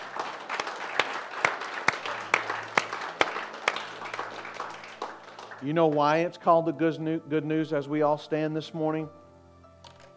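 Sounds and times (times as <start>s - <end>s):
audience applause: 0.0s - 6.2s
speech: 5.6s - 9.2s.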